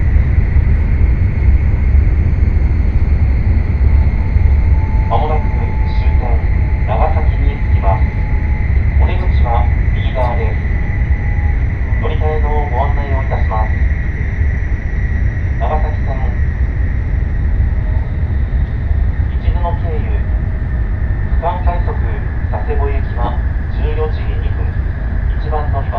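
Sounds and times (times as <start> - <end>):
Nishi-Kyushu Shinkansen Kamome train rumble: 0.0 - 25.9
thin constant whine: 0.0 - 25.9
voices: 4.1 - 14.3, 15.5 - 16.6, 17.8 - 25.9.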